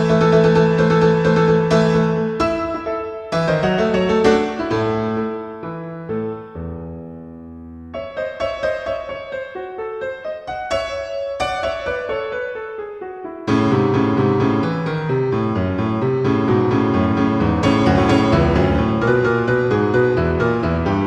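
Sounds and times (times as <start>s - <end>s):
piano medley: 0.0s - 21.0s.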